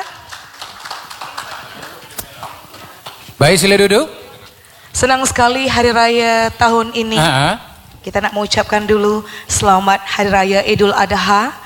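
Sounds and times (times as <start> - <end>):
applause: 0.0 - 3.3
speech: 3.4 - 4.2, 5.0 - 11.6.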